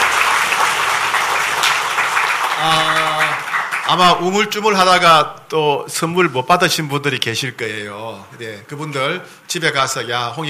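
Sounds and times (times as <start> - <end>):
large crowd applause: 0.0 - 4.3
speech: 3.9 - 10.4.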